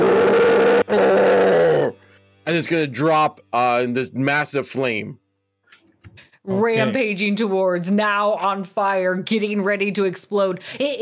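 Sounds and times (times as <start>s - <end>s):
person imitating a monster's roar: 0.0s - 2.0s
speech: 2.5s - 5.2s, 6.2s - 10.9s.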